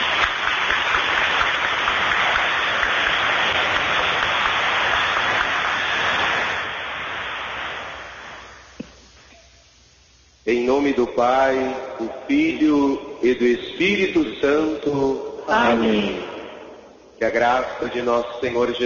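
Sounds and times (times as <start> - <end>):
loud round of applause: 0.0 - 6.8, 15.5 - 16.6
speech: 10.5 - 16.3, 17.2 - 18.8.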